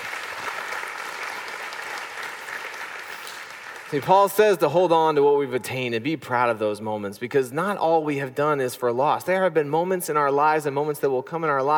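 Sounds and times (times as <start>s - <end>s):
crowd applause: 0.0s - 4.2s
speech: 3.9s - 11.7s.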